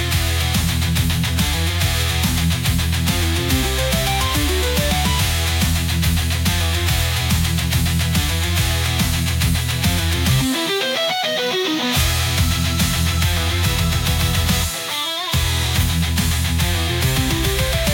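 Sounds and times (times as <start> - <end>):
hard rock music: 0.0 - 17.9.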